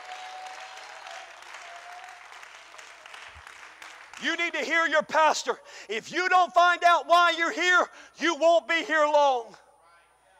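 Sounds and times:
audience clapping hands: 0:00.0 - 0:04.7
speech: 0:04.2 - 0:09.6.

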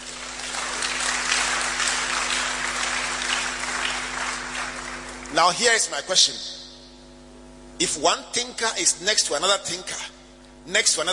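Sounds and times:
audience applause: 0:00.0 - 0:05.4
speech: 0:05.3 - 0:06.6, 0:07.8 - 0:11.1.

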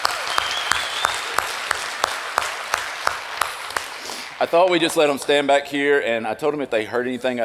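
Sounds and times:
audience applause: 0:00.0 - 0:05.5
speech: 0:04.4 - 0:07.4.

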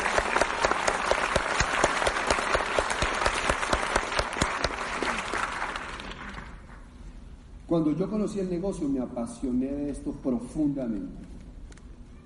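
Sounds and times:
audience applause: 0:00.0 - 0:06.8
speech: 0:07.7 - 0:11.3.

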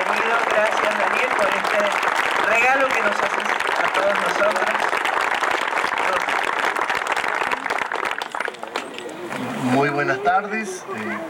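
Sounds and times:
audience applause: 0:00.0 - 0:09.2
voices in crowd: 0:00.0 - 0:11.2
speech: 0:00.1 - 0:04.9, 0:09.8 - 0:11.2.

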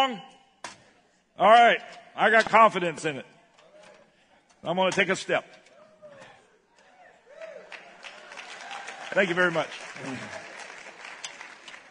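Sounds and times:
speech: 0:00.0 - 0:00.3, 0:01.4 - 0:03.3, 0:04.6 - 0:05.6, 0:09.2 - 0:10.4
audience applause: 0:07.3 - 0:11.9.

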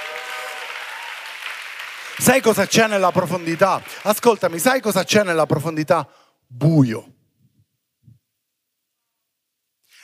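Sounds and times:
audience applause: 0:00.0 - 0:05.6
speech: 0:02.2 - 0:07.1.

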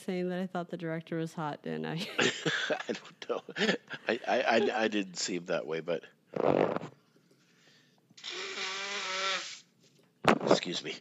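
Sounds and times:
speech: 0:00.0 - 0:07.0, 0:10.5 - 0:11.0
laughter: 0:02.0 - 0:04.9
person blowing their nose: 0:08.2 - 0:09.8.

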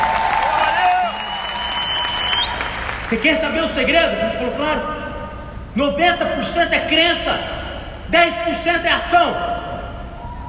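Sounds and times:
whoops and voices: 0:00.0 - 0:02.7
audience applauding for a guest at a Portuguese-speaking gathering: 0:00.0 - 0:03.2
speech: 0:03.1 - 0:05.0, 0:05.8 - 0:09.6.

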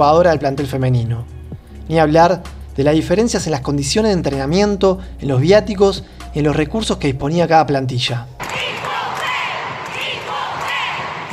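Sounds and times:
speech: 0:00.0 - 0:08.8
stadium fans chanting for equal pay: 0:08.4 - 0:11.3.

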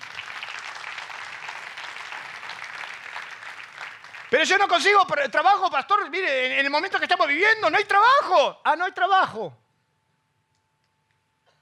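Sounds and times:
audience applause: 0:00.0 - 0:05.2
speech: 0:04.3 - 0:09.6.

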